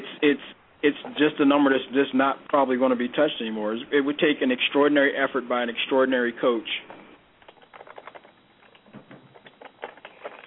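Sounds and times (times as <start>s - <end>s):
speech: 0.2s - 7.0s
typing on a keyboard: 7.4s - 10.4s.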